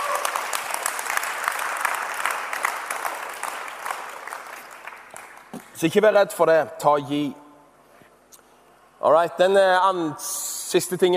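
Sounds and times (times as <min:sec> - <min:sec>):
audience clapping: 0:00.0 - 0:05.8
speech: 0:05.8 - 0:07.4, 0:09.0 - 0:11.1.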